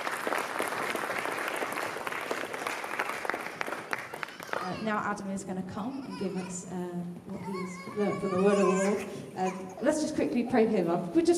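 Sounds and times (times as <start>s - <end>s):
round of applause: 0.0s - 4.9s
speech: 4.8s - 11.3s.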